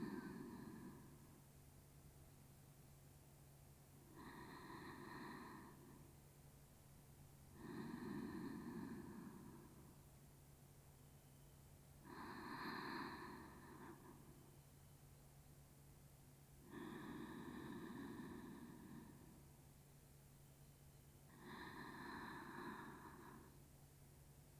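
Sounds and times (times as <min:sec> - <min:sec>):
sleep breathing on the left side: 0:00.0 - 0:01.4, 0:04.1 - 0:06.2, 0:07.5 - 0:10.0, 0:12.0 - 0:14.5, 0:16.6 - 0:19.5, 0:21.3 - 0:23.6.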